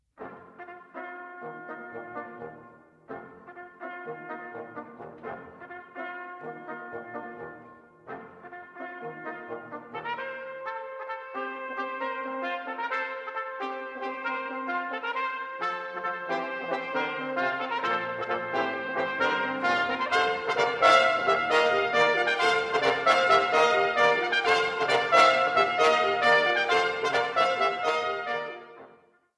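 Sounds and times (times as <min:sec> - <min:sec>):
fanfare: 0:00.2 - 0:29.1.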